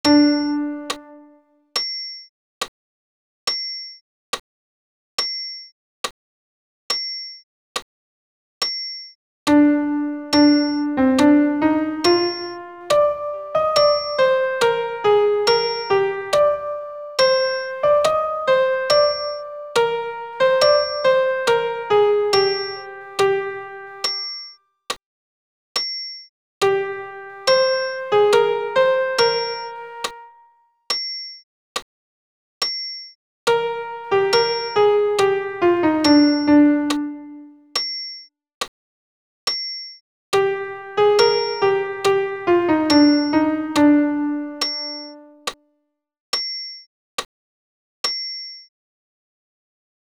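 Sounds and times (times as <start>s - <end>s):
solo piano alto part: 0.0s - 1.4s, 9.5s - 24.2s, 26.6s - 30.5s, 33.5s - 37.6s, 40.4s - 45.5s.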